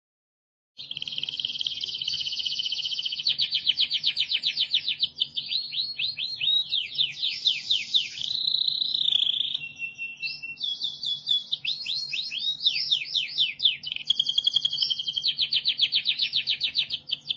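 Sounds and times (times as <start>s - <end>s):
canary singing with trills, down-sweeps and buzzy tours: 0.8s - 17.3s.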